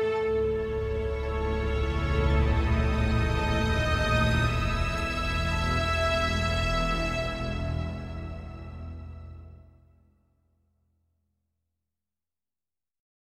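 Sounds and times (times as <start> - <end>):
instrumental music: 0.0 - 10.1.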